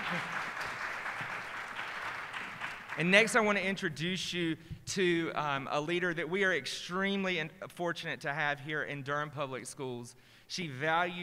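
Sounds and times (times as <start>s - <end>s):
laughter: 0.0s - 1.4s
audience applause: 0.0s - 3.1s
speech: 3.0s - 11.2s.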